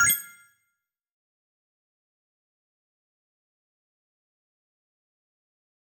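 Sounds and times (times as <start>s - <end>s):
confirmation tones: 0.0s - 0.4s.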